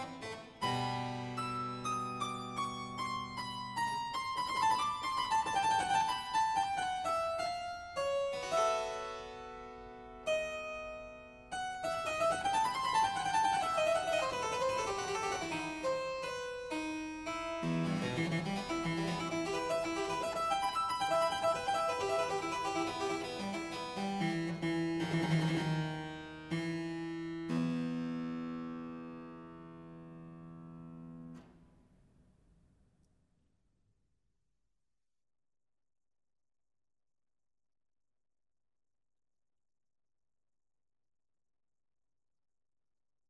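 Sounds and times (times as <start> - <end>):
modulating prelude in F major to E minor: 0.0 - 30.1.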